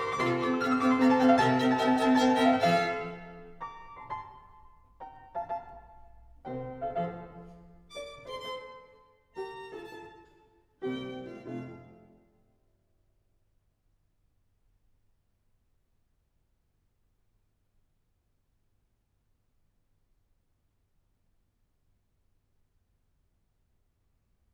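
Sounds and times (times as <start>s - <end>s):
violin and piano sonata in F major minuet tempo: 0.0s - 12.3s.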